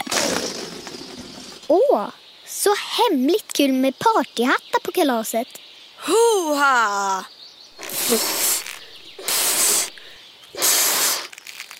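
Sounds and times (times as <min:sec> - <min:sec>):
blowing air into a balloon: 0:00.0 - 0:00.7, 0:07.8 - 0:11.4
speech: 0:01.7 - 0:07.4, 0:08.1 - 0:08.5.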